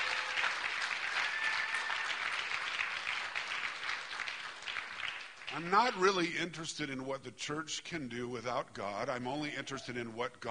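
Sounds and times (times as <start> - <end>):
crowd of people clapping in sustained applause: 0.0 - 6.2
speech: 5.6 - 10.4.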